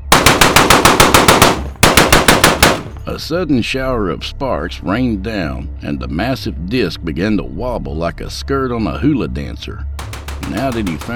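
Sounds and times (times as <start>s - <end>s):
machine gun fire: 0.0s - 3.0s, 10.0s - 11.1s
speech: 3.2s - 11.1s.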